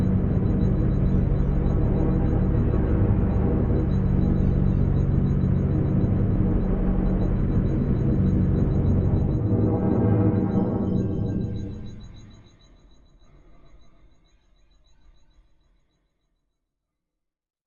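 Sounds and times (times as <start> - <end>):
spacecraft engine: 0.0 - 12.3.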